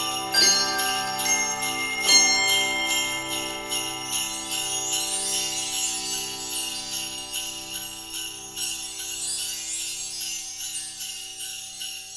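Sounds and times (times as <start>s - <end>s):
handbell ringers playing a Christmas carol on handbells: 0.0s - 12.1s.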